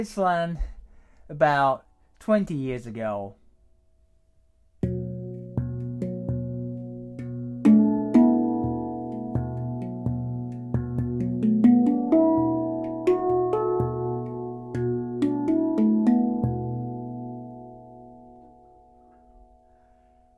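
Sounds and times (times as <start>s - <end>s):
speech: 0.0s - 0.7s, 1.3s - 3.4s
steel handpan played for meditation: 4.8s - 19.5s.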